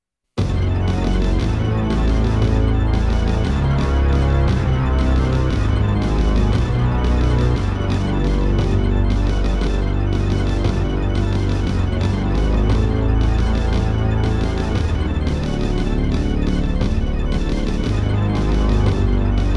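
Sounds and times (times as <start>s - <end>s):
demo background music: 0.4s - 19.5s.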